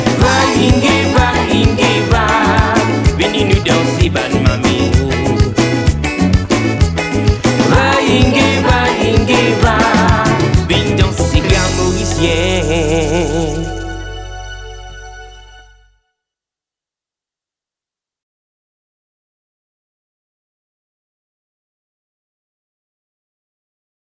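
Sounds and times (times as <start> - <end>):
sega music: 0.0 - 16.0.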